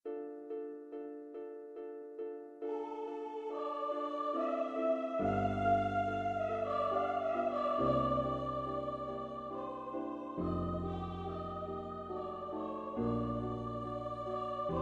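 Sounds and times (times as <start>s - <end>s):
person singing: 2.7s - 14.7s.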